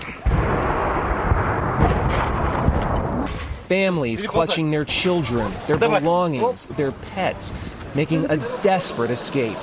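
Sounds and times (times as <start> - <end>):
artillery shells exploding: 0.2 - 3.7
speech: 3.7 - 9.6.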